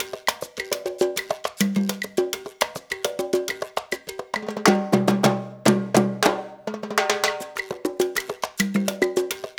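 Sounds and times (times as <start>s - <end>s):
percussion loop: 0.0s - 9.5s.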